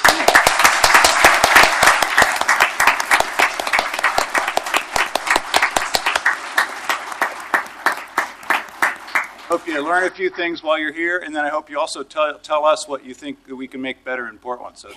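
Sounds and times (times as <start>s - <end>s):
standing audience applauding to welcome students to Portland: 0.0s - 10.5s
speech: 9.5s - 14.9s.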